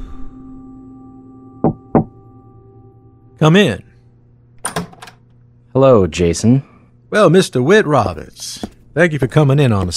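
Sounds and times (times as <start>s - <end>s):
steady low electrical hum: 0.0s - 9.9s
firm knocks on a door: 1.6s - 2.1s
speech: 3.4s - 3.9s, 5.8s - 9.9s.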